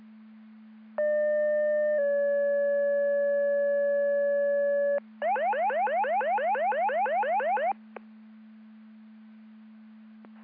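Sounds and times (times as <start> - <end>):
siren: 1.0 - 7.8.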